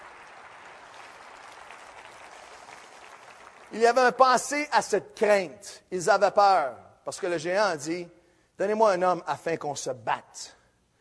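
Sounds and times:
audience applause: 0:00.0 - 0:04.0
speech: 0:03.7 - 0:10.6.

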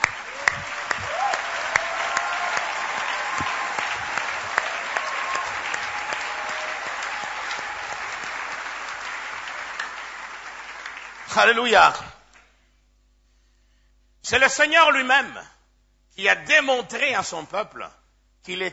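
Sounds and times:
applause: 0:00.0 - 0:12.5
speech: 0:11.4 - 0:12.1, 0:14.3 - 0:15.6, 0:16.2 - 0:18.7.

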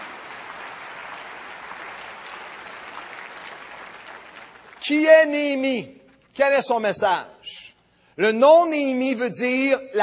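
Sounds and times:
audience applause: 0:00.0 - 0:04.9
speech: 0:04.9 - 0:07.6, 0:08.2 - 0:10.0.

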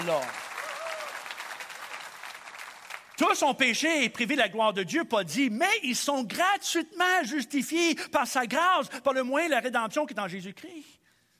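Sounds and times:
speech: 0:00.0 - 0:00.4, 0:03.2 - 0:11.0
church congregation applauding: 0:00.0 - 0:04.1.

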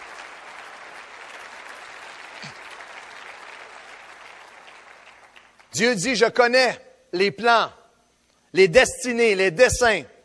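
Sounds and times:
church congregation applauding in an ovation: 0:00.0 - 0:06.3
speech: 0:05.8 - 0:07.8, 0:08.5 - 0:10.1.

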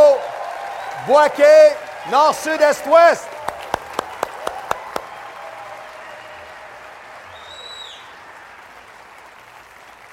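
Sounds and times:
audience applauding at a morning sermon: 0:00.0 - 0:10.1
speech: 0:01.0 - 0:03.4
faint whistling tone: 0:07.4 - 0:08.1.

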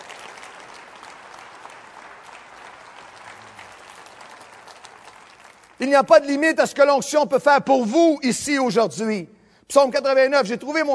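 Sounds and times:
audience applause: 0:00.0 - 0:05.8
speech: 0:05.8 - 0:10.9.

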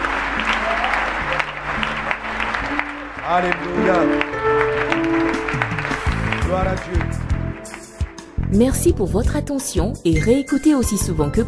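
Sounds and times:
church congregation applauding and cheering at the close of a prayer: 0:00.0 - 0:08.7
speech: 0:03.3 - 0:04.4, 0:06.6 - 0:07.3, 0:08.5 - 0:11.4.

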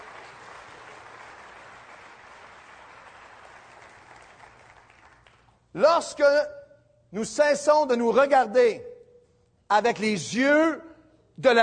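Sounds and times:
audience applause: 0:00.0 - 0:05.6
speech: 0:05.8 - 0:08.9, 0:09.7 - 0:11.6.

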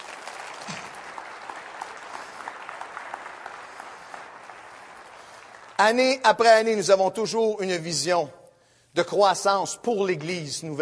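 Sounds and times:
audience applause: 0:00.0 - 0:05.8
speech: 0:05.8 - 0:08.4, 0:09.0 - 0:10.8.

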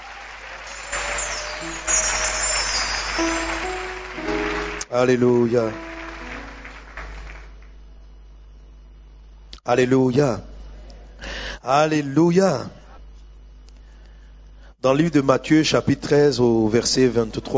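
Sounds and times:
audience acclamations and applause: 0:00.0 - 0:07.8
speech: 0:03.2 - 0:03.4, 0:04.9 - 0:05.9, 0:09.7 - 0:10.5, 0:11.6 - 0:12.8, 0:14.8 - 0:17.5.

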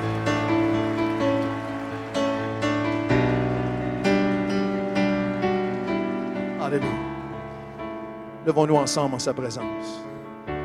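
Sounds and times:
audience applause: 0:00.0 - 0:07.1
speech: 0:08.5 - 0:10.1.

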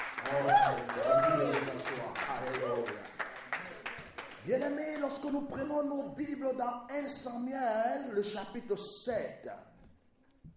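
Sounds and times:
church congregation clapping to acclaim God: 0:00.0 - 0:05.8
speech: 0:00.3 - 0:03.1, 0:04.4 - 0:09.7.

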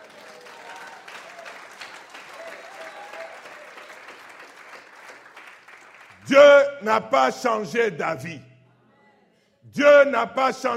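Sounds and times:
congregation applauding during a church sermon: 0:00.0 - 0:06.8
speech: 0:06.3 - 0:08.5, 0:09.8 - 0:10.7.

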